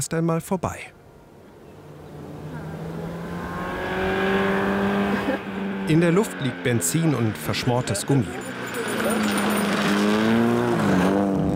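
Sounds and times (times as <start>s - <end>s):
speech: 0.0s - 1.0s, 5.9s - 9.4s
old car engine accelerating hard on dirt road: 1.1s - 11.5s.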